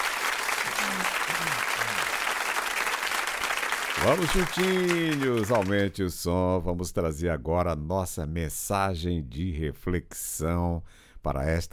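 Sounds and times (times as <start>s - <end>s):
applause: 0.0s - 6.0s
speech: 4.0s - 11.7s.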